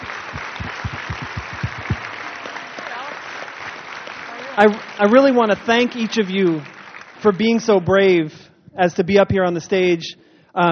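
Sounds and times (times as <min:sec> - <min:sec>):
audience applause: 0:00.0 - 0:08.2
speech: 0:04.6 - 0:10.7.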